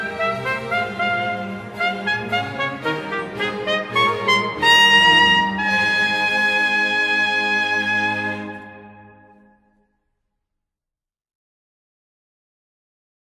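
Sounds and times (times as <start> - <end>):
concerto allegro in A-flat major: 0.0 - 9.5.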